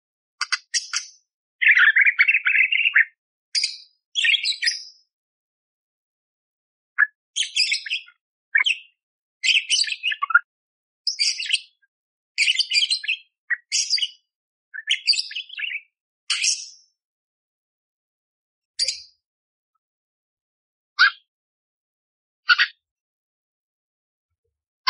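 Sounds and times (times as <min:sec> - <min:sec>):
Eurasian tree sparrow fighting song chirps: 0:00.4 - 0:05.0, 0:07.0 - 0:10.4, 0:11.1 - 0:11.8, 0:12.4 - 0:14.2, 0:14.8 - 0:16.9, 0:18.8 - 0:19.1.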